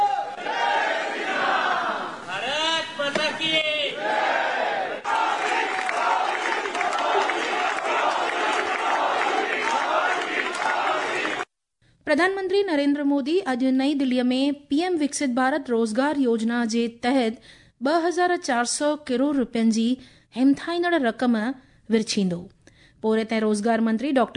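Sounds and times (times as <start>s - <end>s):
crowd from the Indian community in France chanting Modi and Bharat Mata ki Jai: 0.1s - 2.4s, 3.1s - 11.5s
speech: 12.1s - 24.3s.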